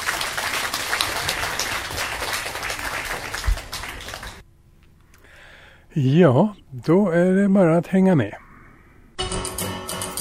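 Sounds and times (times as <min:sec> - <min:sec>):
audience applause: 0:00.0 - 0:04.4
speech: 0:06.0 - 0:08.4.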